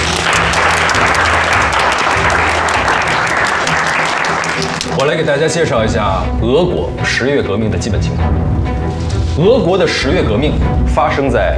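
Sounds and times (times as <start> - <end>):
audience applause welcoming a speaker at a student reading-group meeting: 0.0 - 5.3
speech: 5.0 - 8.7, 9.4 - 11.5.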